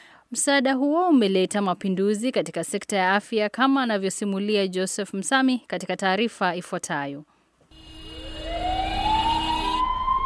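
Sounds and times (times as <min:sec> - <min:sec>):
speech: 0:00.3 - 0:07.3
government ambulance siren wailing: 0:07.8 - 0:10.2.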